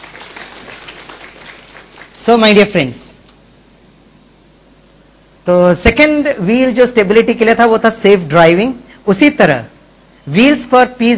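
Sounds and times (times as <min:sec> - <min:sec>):
audience applause: 0:00.0 - 0:02.7
speech: 0:02.3 - 0:03.0, 0:05.5 - 0:09.7, 0:10.3 - 0:11.1.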